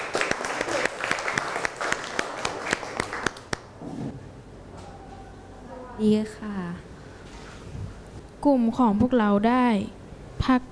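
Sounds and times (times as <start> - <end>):
applause for a group: 0.0 - 3.7
speech: 6.0 - 6.8, 8.4 - 10.7.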